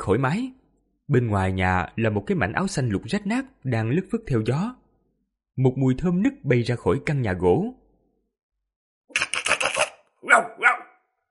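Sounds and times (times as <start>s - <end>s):
speech: 0.0s - 4.8s, 5.6s - 7.8s
large old yellow-furred dog barking: 10.4s - 11.0s.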